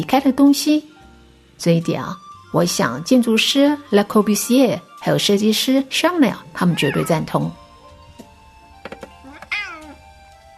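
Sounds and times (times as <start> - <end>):
speech: 0.0 - 0.9, 1.6 - 7.6
hungry cat meowing: 6.4 - 7.6, 9.2 - 10.1.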